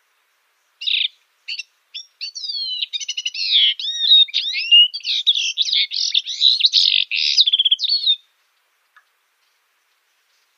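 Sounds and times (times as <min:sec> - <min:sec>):
Syrian serin singing a jingling twitter of buzzy trills: 0:00.7 - 0:08.2.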